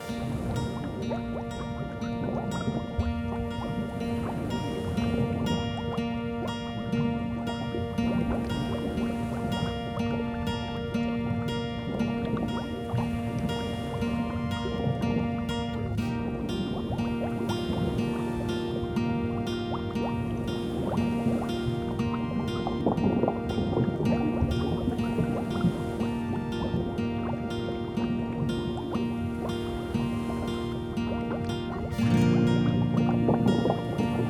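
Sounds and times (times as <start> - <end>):
underwater ambience: 0.0 - 34.2.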